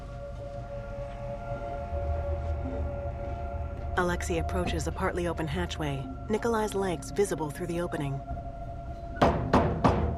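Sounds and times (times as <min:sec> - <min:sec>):
low hum: 0:00.0 - 0:09.3
speech: 0:04.0 - 0:08.4
knocking on a doorframe: 0:09.2 - 0:10.1.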